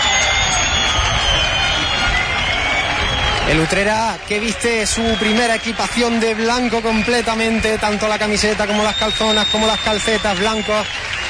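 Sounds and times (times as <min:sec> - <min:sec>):
Recreativo supporters whistling: 0:00.0 - 0:11.2
Utrera football fans applauding as the team takes the field: 0:00.0 - 0:11.2
speech: 0:03.5 - 0:11.1.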